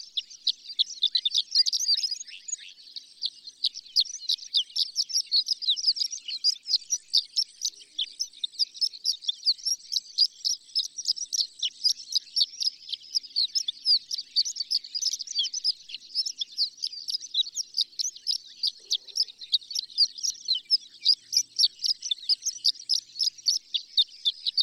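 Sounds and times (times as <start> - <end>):
horned lark singing a tinkling jumble: 0.0 - 24.6.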